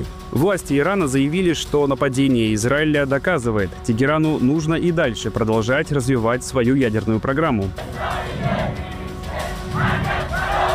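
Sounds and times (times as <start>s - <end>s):
speech: 0.0s - 8.8s
mass demonstration crowd in Tehran: 7.8s - 10.7s.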